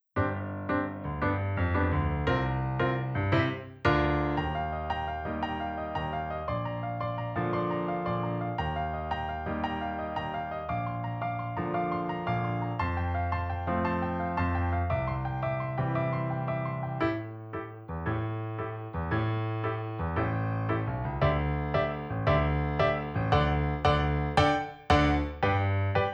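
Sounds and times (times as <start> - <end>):
piano: 0.0 - 26.1.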